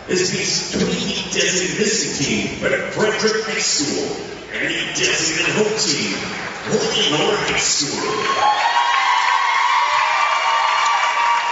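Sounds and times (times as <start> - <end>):
speech: 0.1 - 8.8
loud crowd cheering at basketball game: 6.3 - 11.4.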